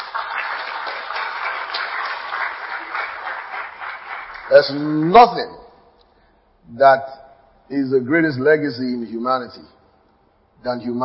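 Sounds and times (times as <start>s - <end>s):
audience applause: 0.0s - 5.1s
speech: 4.5s - 5.6s, 6.7s - 9.8s, 10.6s - 11.0s.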